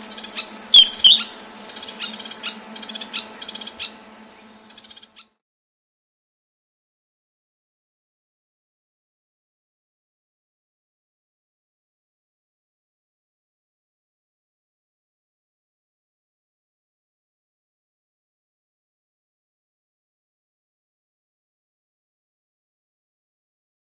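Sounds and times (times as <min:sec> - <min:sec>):
swallow-tailed manakin giving nasal buzzy calls: 0:00.0 - 0:05.4.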